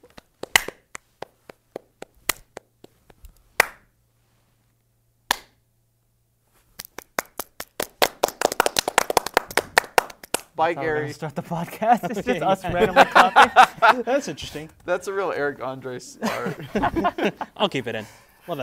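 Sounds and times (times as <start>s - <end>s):
people clapping hands: 0.0s - 3.0s, 3.6s - 3.8s, 6.8s - 10.6s
speech: 10.6s - 18.6s
laughter: 11.4s - 14.6s, 16.2s - 18.0s.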